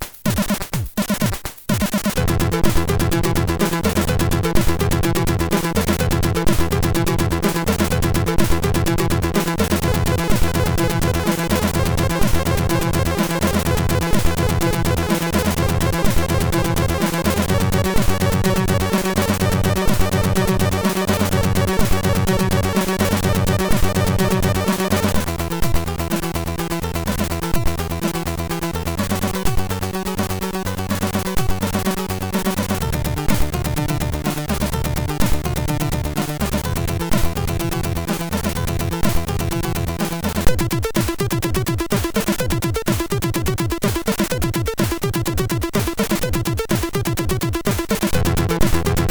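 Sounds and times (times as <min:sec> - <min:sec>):
short techno on MOS6581 SID chip: 0:00.4 - 0:49.0.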